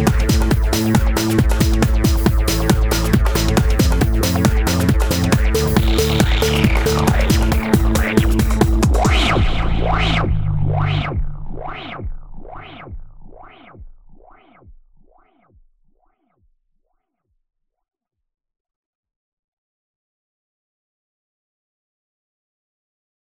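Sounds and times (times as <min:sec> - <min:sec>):
UK house music: 0:00.0 - 0:14.6.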